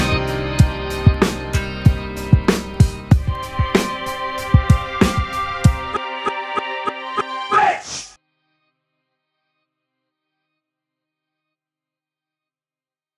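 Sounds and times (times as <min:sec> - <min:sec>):
hip hop music: 0:00.0 - 0:08.1.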